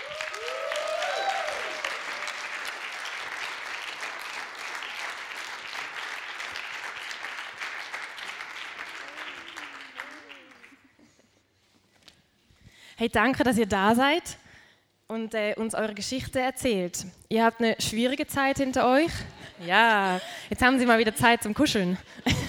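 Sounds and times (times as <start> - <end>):
people whooping: 0.0 - 2.7, 8.8 - 10.8
audience applause: 0.0 - 11.0
speech: 13.0 - 14.4, 15.2 - 22.4.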